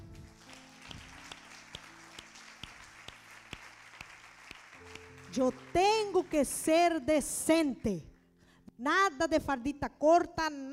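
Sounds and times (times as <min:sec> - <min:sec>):
audience applause: 0:00.2 - 0:06.2
speech: 0:05.3 - 0:08.1, 0:08.8 - 0:10.7.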